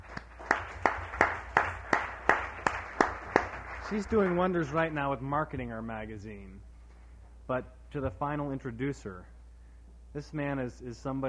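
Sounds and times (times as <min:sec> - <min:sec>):
rhythmic clapping: 0:00.0 - 0:05.0
speech: 0:03.9 - 0:06.7, 0:07.5 - 0:09.4, 0:10.1 - 0:11.2.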